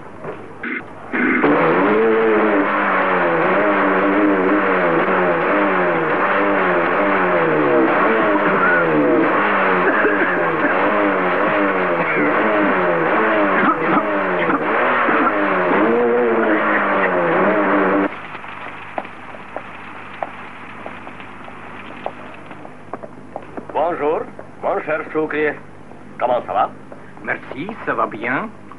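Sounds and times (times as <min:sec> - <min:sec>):
engine cranking and running: 0:00.7 - 0:22.9
speech: 0:25.1 - 0:28.6.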